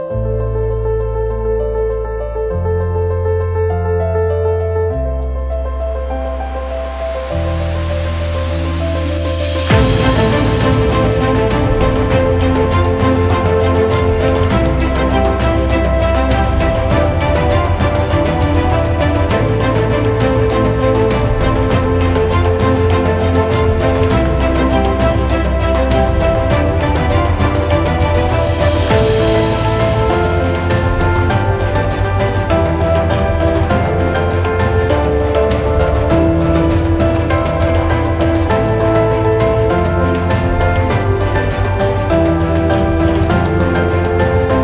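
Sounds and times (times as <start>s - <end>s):
epic background music for videos and trailers: 0.2s - 44.6s.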